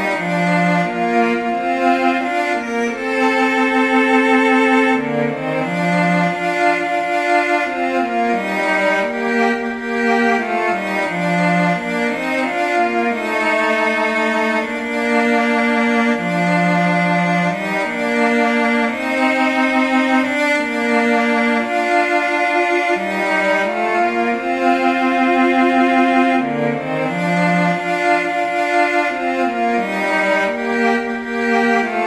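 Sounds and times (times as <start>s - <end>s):
cello duet: 0.0s - 32.0s.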